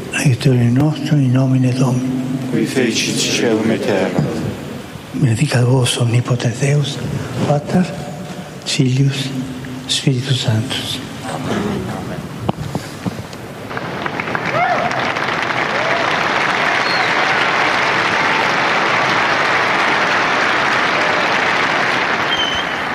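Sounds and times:
speech: 0.2 - 8.1, 8.7 - 12.0
pilgrims applauding in Saint Peter's Square: 13.6 - 22.9.

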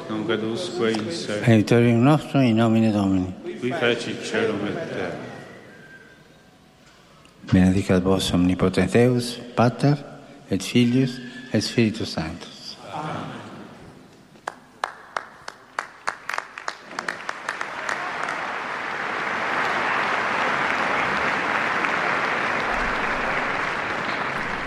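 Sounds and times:
speech: 0.1 - 5.3, 7.4 - 13.3
pilgrims applauding after papal blessing: 14.4 - 24.6.

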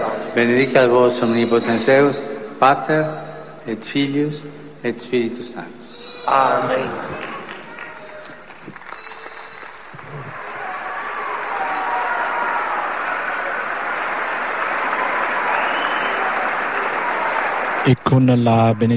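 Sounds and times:
speech: 0.4 - 7.2, 17.8 - 18.9
pilgrims applauding in audience hall: 6.3 - 18.9.

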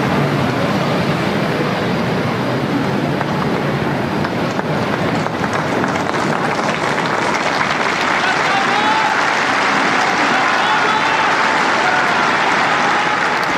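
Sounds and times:
murmuring voices: 0.2 - 13.5
pilgrims applauding in a square: 3.1 - 13.5
faint cheers: 6.2 - 13.5.

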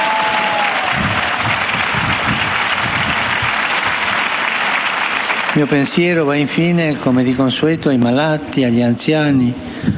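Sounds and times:
crowd applause in a square: 0.0 - 6.3
speech: 5.6 - 9.9.

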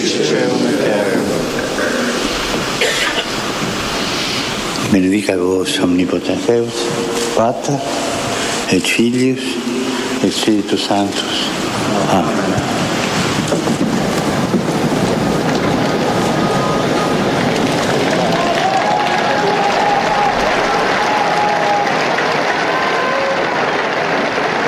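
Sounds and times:
vast crowd of pilgrims applauding at the close of Pope Francis's general audience: 0.0 - 24.6
speech: 4.9 - 8.0, 8.7 - 12.8.

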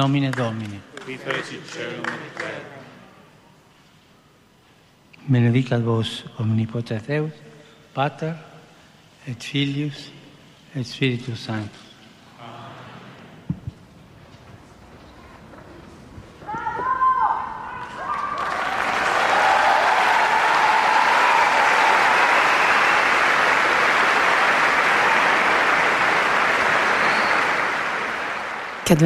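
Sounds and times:
speech: 0.0 - 2.8, 5.2 - 8.5, 9.2 - 10.2, 10.8 - 11.8, 28.9 - 29.0
large crowd applause in a hall: 17.4 - 29.0.

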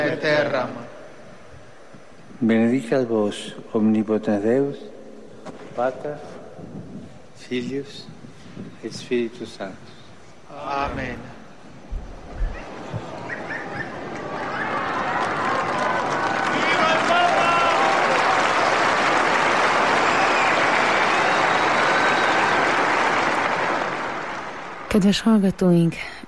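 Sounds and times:
speech: 0.1 - 1.0, 2.4 - 4.9, 5.5 - 11.4, 25.0 - 26.2
faint cheers and voices: 12.3 - 24.9
crowd applause: 12.6 - 25.0.

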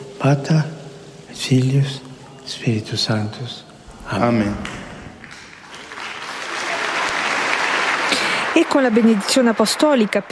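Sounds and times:
speech: 0.2 - 0.8, 1.4 - 4.8, 8.6 - 10.3
storm of applause from audience: 4.6 - 10.3.

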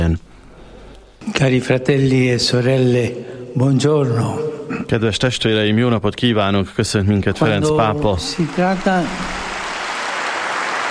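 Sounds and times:
speech: 0.0 - 0.3, 1.2 - 9.4
pilgrims applauding Pope Francis in the hall: 7.6 - 10.8.

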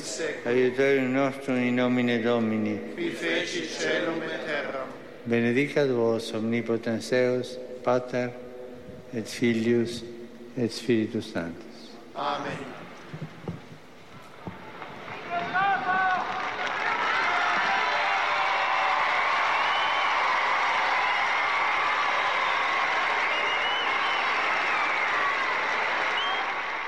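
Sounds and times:
speech: 0.2 - 8.4, 9.1 - 13.3
pilgrims applauding: 14.5 - 26.8.

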